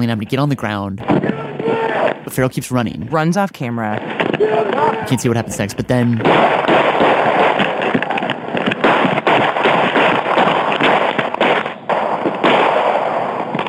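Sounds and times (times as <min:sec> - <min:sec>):
speech: 0:00.0 - 0:06.6
police gunshots: 0:03.9 - 0:13.6.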